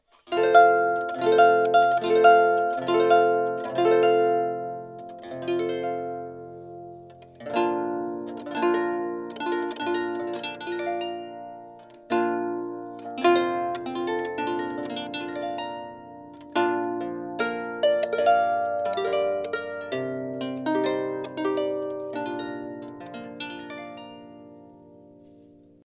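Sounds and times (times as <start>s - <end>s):
harp playing a wedding march: 0.3s - 25.5s.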